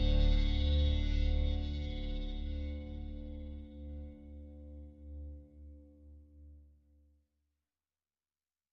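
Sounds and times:
synth pads: 0.0s - 4.6s.

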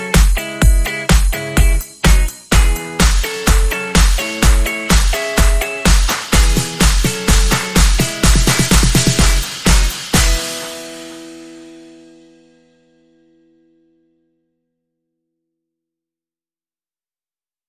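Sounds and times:
main beat: 0.0s - 11.3s
funk guitar: 0.0s - 12.6s.

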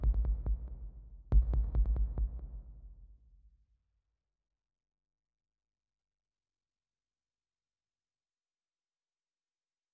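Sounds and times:
drums: 0.0s - 3.2s.

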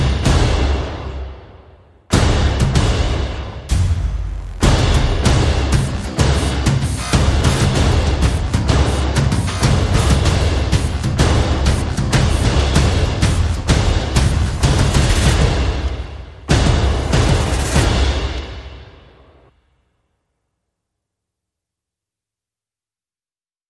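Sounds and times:
percussion: 0.0s - 19.5s
sound effects: 3.7s - 19.4s.

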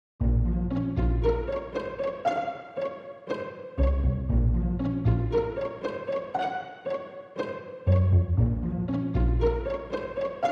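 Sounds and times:
strings: 0.2s - 10.5s.

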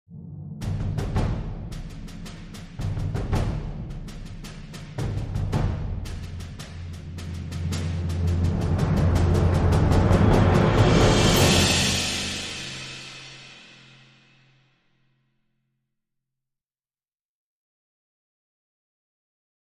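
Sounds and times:
military drums: 0.6s - 13.9s.

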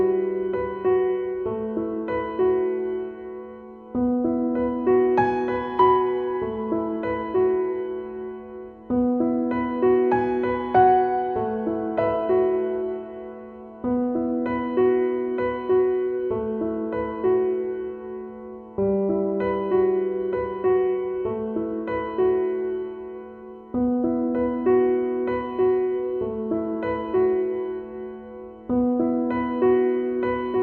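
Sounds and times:
piano: 0.0s - 30.6s.

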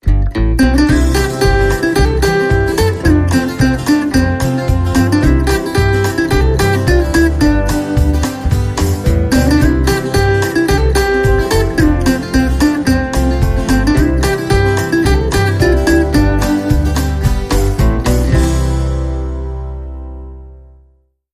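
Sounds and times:
cowboy bluegrass jingle: 0.0s - 20.2s.

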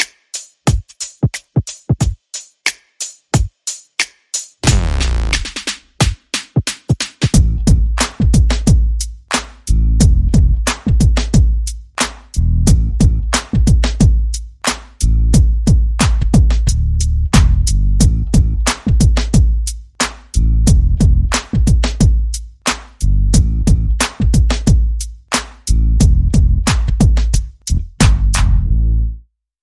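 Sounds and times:
percussion: 0.0s - 28.7s
bass: 4.6s - 5.6s, 7.4s - 29.2s.

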